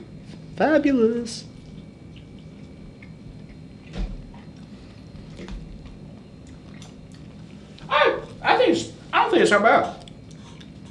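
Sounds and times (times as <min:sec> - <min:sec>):
speech: 0:00.6 - 0:01.5, 0:09.4 - 0:10.0
person chewing a hot sauce chicken wing: 0:01.6 - 0:08.4, 0:10.0 - 0:10.8
low steady hiss: 0:07.3 - 0:10.1.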